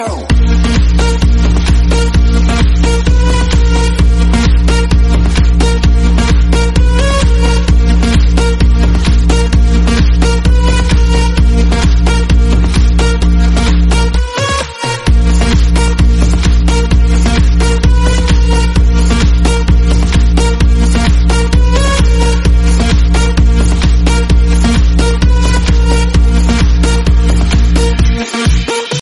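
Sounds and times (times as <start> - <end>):
crazy techno remix: 0.0 - 29.0.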